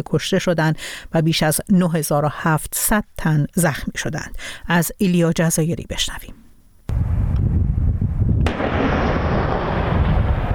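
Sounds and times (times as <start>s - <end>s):
speech: 0.0s - 6.4s
Israeli army artillery fire targeting southern Lebanon: 6.9s - 10.5s.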